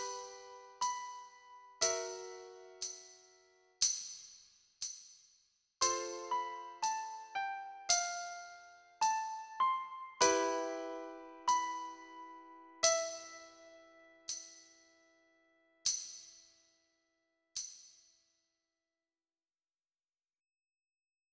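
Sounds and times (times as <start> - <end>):
slow pianoforte song: 0.0 - 3.6, 5.8 - 15.2.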